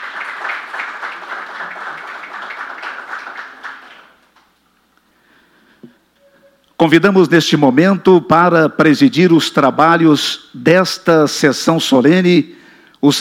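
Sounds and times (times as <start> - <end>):
applause: 0.0 - 4.5
speech: 6.8 - 13.1.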